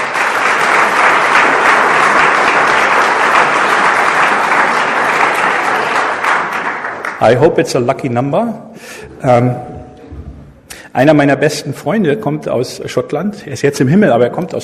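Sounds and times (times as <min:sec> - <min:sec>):
audience applause: 0:00.0 - 0:07.5
speech: 0:07.2 - 0:09.7, 0:10.9 - 0:14.6.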